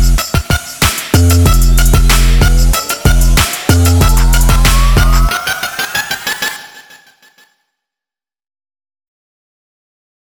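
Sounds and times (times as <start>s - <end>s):
dance music without vocals: 0.0s - 7.2s.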